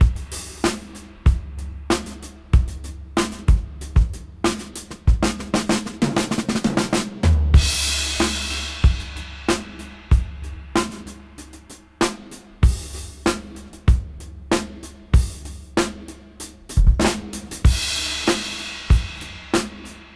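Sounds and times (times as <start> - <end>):
funk music at 94 BPM: 0.0 - 20.1.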